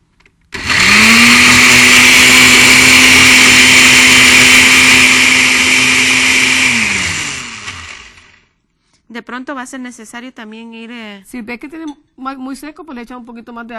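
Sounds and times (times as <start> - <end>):
blender liquefying ingredients with water: 0.6 - 8.5
speech: 9.6 - 13.7.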